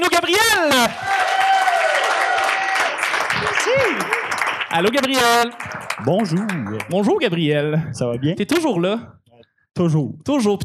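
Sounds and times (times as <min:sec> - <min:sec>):
speech: 0:00.1 - 0:01.1, 0:03.7 - 0:09.2, 0:09.8 - 0:10.6
audience applause: 0:00.9 - 0:07.3.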